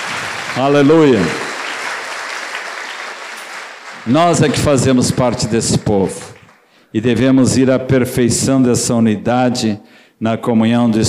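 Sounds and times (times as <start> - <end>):
audience applause: 0.0 - 6.7
speech: 0.6 - 1.4, 4.0 - 6.3, 6.9 - 11.0.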